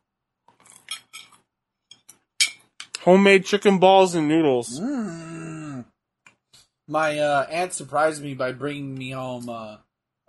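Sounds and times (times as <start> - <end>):
cutlery clinking and scraping against a plate while eating dinner: 0.7 - 2.9
speech: 3.0 - 5.4, 6.9 - 10.2.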